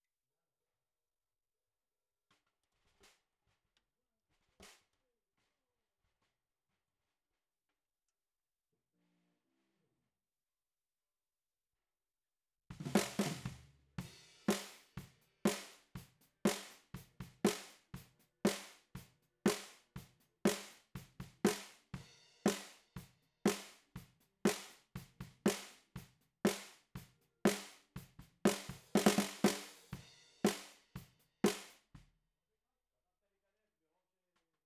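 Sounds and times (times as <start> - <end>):
bottom snare drum: 12.8 - 32.0.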